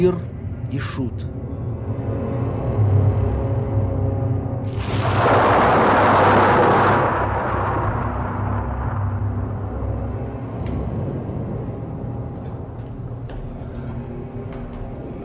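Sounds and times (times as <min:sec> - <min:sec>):
speech: 0:00.0 - 0:01.4
storm with thunder: 0:02.5 - 0:12.8.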